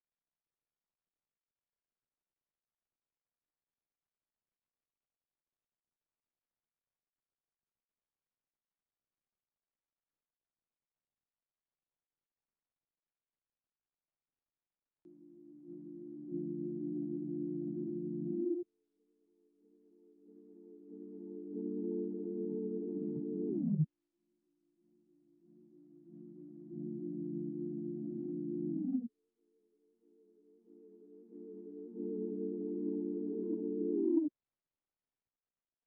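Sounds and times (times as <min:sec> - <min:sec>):
D minor sine synth melody loop: 0:15.1 - 0:18.6, 0:20.0 - 0:23.8, 0:25.5 - 0:29.0, 0:30.6 - 0:34.3.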